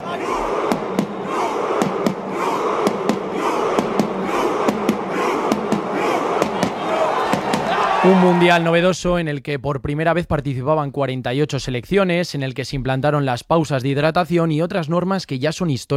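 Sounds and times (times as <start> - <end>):
drum beats struck by players in a Norwegian World Cup rowing celebration: 0.0 - 8.4
loud continuous crowd roar: 0.0 - 8.8
speech: 8.0 - 15.9.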